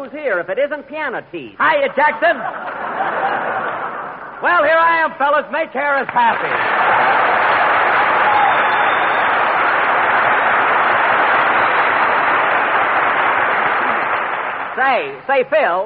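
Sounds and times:
speech: 0.0s - 3.5s, 4.4s - 7.2s, 14.8s - 15.8s
laughter: 2.1s - 4.4s, 6.4s - 8.5s
studio audience applause: 6.1s - 15.1s.

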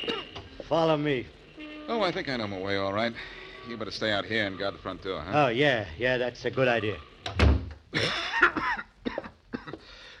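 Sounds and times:
coughing: 0.0s - 0.6s, 7.9s - 10.0s
speech: 0.7s - 8.1s.

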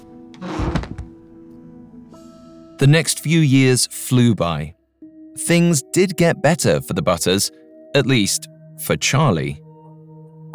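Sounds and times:
chair leg breaking: 0.0s - 1.3s
person tumbling to the floor: 0.0s - 1.3s
speech: 2.8s - 4.8s, 5.4s - 9.6s.

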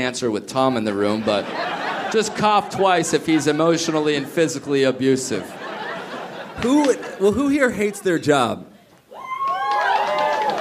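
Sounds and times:
speech: 0.0s - 5.7s, 6.6s - 8.7s
laughter: 0.5s - 8.5s
waitresses whooping and cheering: 9.1s - 10.5s
waitresses applauding with scattered clapping: 9.4s - 10.5s.

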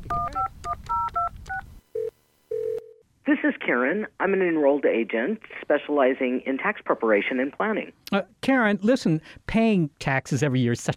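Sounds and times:
cell phone keypad dialing tones: 0.0s - 3.0s
speech: 3.7s - 10.9s.

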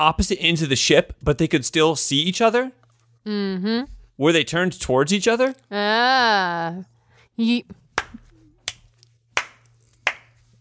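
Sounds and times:
speech: 0.0s - 7.8s
hand clapping: 8.0s - 10.5s.

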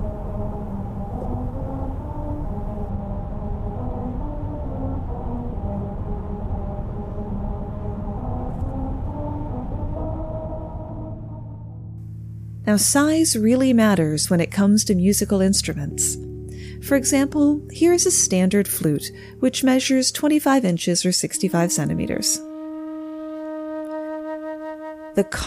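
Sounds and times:
tires rolling over a musical road: 0.0s - 13.0s
speech: 12.7s - 22.5s, 25.2s - 25.4s.

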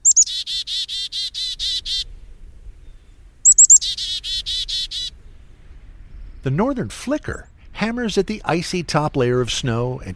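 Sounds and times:
Black-capped Chickadee call: 0.0s - 2.0s, 3.5s - 5.1s
speech: 6.4s - 10.1s.

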